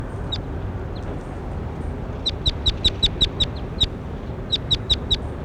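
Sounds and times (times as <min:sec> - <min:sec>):
bird chirping: 0:00.2 - 0:05.4.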